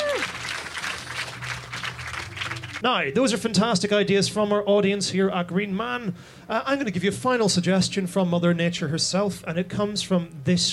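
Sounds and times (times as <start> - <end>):
audience round of applause: 0.0 - 2.8
speech: 2.8 - 10.7.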